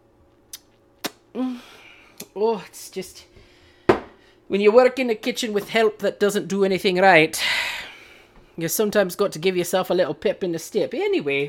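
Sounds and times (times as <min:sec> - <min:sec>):
speech: 0:01.4 - 0:03.4, 0:04.5 - 0:07.6, 0:08.6 - 0:11.4
cups clinking together in a toast: 0:03.9 - 0:04.2.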